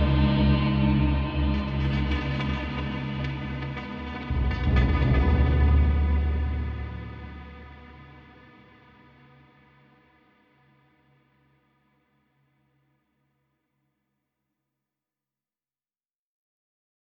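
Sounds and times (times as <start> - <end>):
creepy mood music: 0.0 - 8.7.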